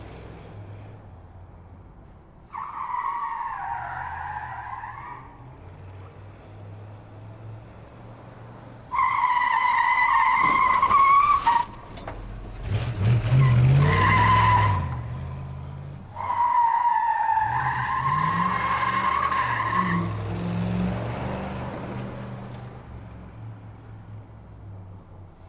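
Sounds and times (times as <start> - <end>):
muscle car driving: 0.0 - 25.4
muscle car skidding out: 2.4 - 6.3, 8.6 - 22.6.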